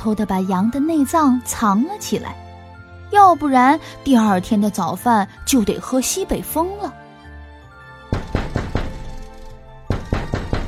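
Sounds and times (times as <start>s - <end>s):
speech: 0.0s - 2.4s, 3.1s - 7.0s
knocking on a door: 8.1s - 9.1s, 9.9s - 10.6s.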